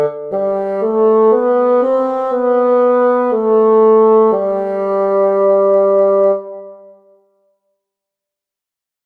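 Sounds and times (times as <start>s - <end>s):
bassoon: 0.0s - 7.2s.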